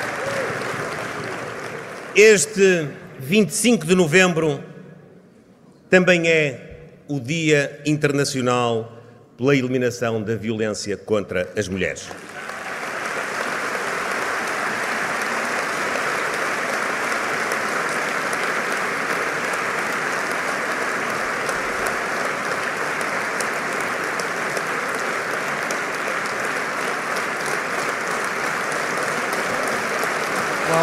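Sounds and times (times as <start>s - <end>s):
prolonged applause: 0.0s - 3.2s, 12.1s - 30.8s
speech: 2.2s - 4.7s, 5.9s - 12.4s.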